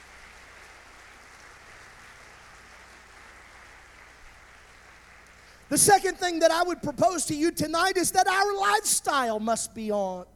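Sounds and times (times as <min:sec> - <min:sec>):
audience clapping hands: 0:00.0 - 0:06.2
speech: 0:05.7 - 0:10.3.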